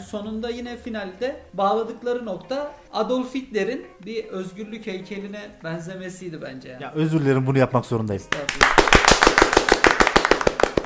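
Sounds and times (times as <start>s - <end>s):
speech: 0.0s - 8.8s
hand clapping: 8.3s - 10.8s.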